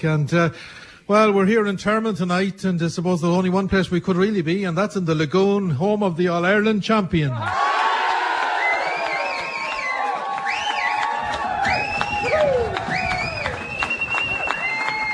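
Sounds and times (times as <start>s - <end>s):
speech: 0.0s - 7.7s
large crowd cheering and shouting in a hall: 7.4s - 15.1s
whistles: 8.6s - 15.1s.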